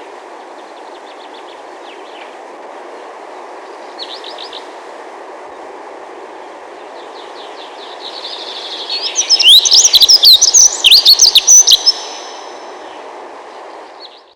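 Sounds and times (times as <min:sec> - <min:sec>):
dunnock calling: 0:08.8 - 0:12.6.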